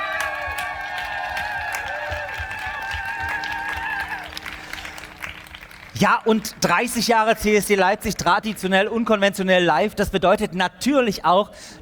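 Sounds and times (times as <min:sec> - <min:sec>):
cheers: 0:00.0 - 0:06.0
large outdoor crowd applauding on a city square: 0:00.0 - 0:07.6
speech: 0:06.0 - 0:11.8.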